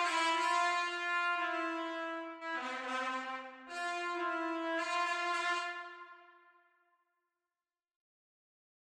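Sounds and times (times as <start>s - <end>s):
B-flat trumpet: 0.0s - 6.7s.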